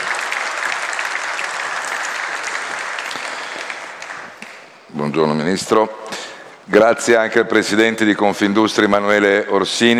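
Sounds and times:
audience applause: 0.0s - 4.9s
speech: 5.0s - 6.1s, 6.7s - 9.9s.

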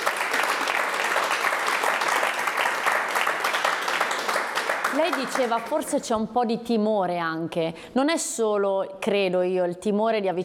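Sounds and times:
audience applause: 0.0s - 5.8s
speech: 5.0s - 10.4s.

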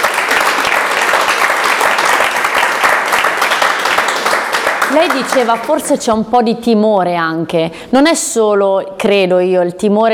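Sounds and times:
audience applause: 0.0s - 5.9s
speech: 4.9s - 10.1s.

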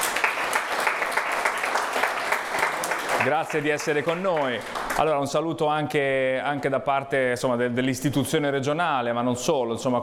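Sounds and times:
audience applause: 0.0s - 5.2s
speech: 3.2s - 10.0s.

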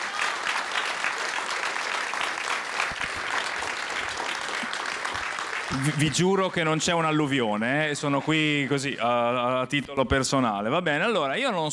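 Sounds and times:
audience applause: 0.0s - 9.1s
speech: 5.7s - 11.7s.

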